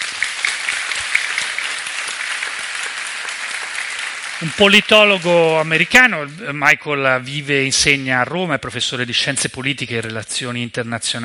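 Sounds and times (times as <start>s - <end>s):
audience clapping: 0.0s - 7.6s
speech: 4.4s - 11.2s.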